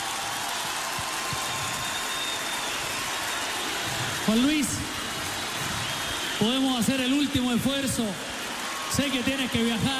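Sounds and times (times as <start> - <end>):
large crowd applauding: 0.0 - 9.9
speech: 4.3 - 5.0, 6.4 - 8.3, 8.9 - 9.9.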